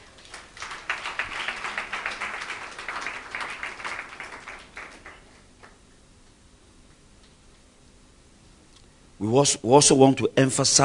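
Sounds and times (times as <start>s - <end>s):
audience clapping: 0.0s - 5.8s
speech: 9.2s - 10.8s.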